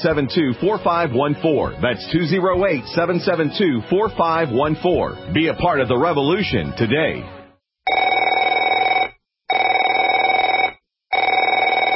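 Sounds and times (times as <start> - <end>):
speech: 0.0 - 7.4
telephone ringing: 7.9 - 11.9.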